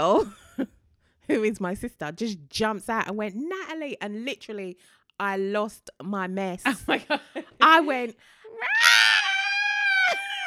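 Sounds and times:
speech: 0.0s - 0.7s, 1.3s - 8.8s
woman's scream of distress on being startled: 8.5s - 10.4s.

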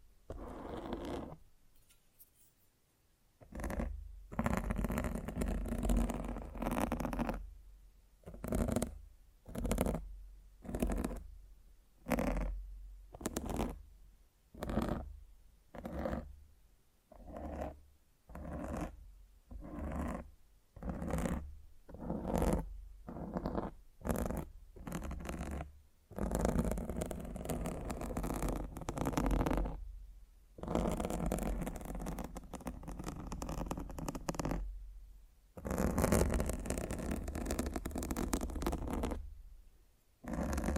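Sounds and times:
scratching and rubbing on a microphone: 0.3s - 1.4s, 3.4s - 7.4s, 8.3s - 11.3s, 12.0s - 13.8s, 14.6s - 15.1s, 15.7s - 16.3s, 17.1s - 29.8s, 30.6s - 34.7s, 35.6s - 39.3s, 40.2s - 40.7s.

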